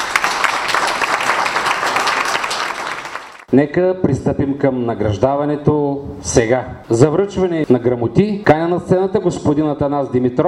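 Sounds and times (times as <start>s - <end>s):
audience applause: 0.0s - 3.5s
speech: 3.5s - 10.4s.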